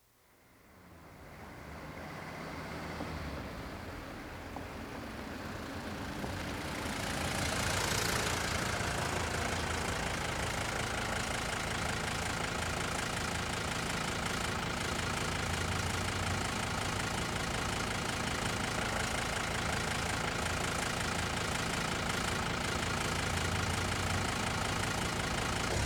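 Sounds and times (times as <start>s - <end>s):
Mercedes 300 D arriving, idling and driving off: 0.6s - 25.8s.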